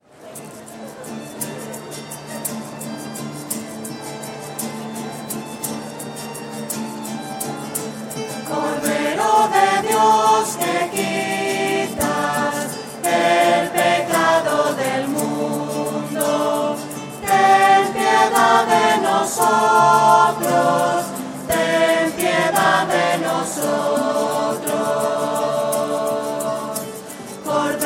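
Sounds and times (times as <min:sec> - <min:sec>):
voices singing: 0:08.3 - 0:27.8.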